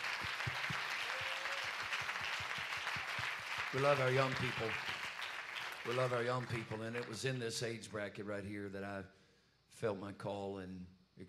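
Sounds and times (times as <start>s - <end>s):
audience hand clapping: 0.0s - 7.3s
speech: 3.7s - 4.9s, 5.8s - 9.2s, 9.8s - 11.2s.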